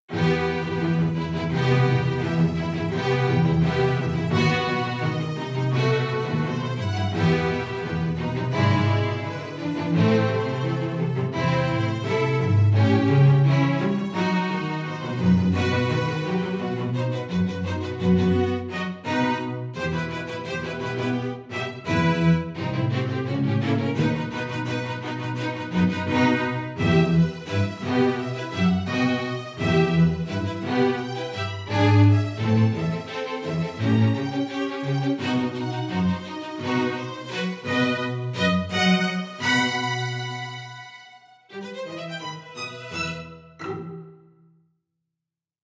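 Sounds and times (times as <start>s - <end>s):
strings: 0.1s - 44.5s.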